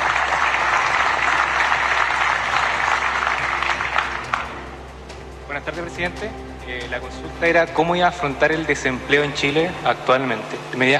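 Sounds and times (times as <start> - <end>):
audience applause: 0.0 - 4.6
speech: 5.7 - 10.9.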